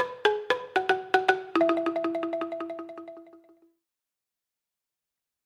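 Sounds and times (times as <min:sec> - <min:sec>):
world music instruments: 0:00.0 - 0:03.4.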